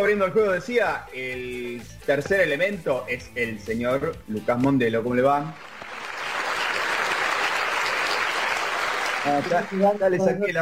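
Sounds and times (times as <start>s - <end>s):
speech: 0.0s - 5.8s, 9.2s - 10.5s
crowd applauding: 5.6s - 10.5s.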